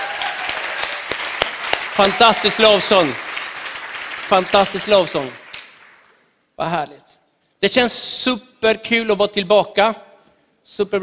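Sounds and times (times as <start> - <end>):
audience applause for worship team: 0.0 - 6.1
speech: 2.0 - 3.2, 4.3 - 5.4, 6.6 - 10.0, 10.6 - 11.0.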